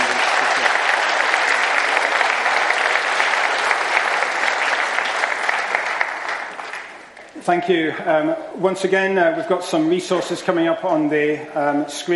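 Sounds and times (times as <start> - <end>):
applause: 0.0 - 7.4
speech: 7.5 - 12.1.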